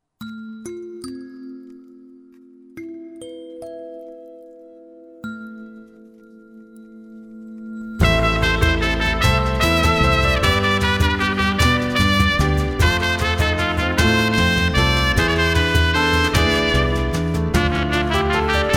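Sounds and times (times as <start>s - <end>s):
Latin dance music: 8.0s - 18.7s.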